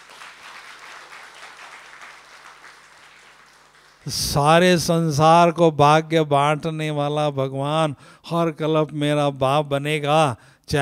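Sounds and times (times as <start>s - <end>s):
audience clapping: 0.0s - 4.4s
speech: 4.0s - 10.8s.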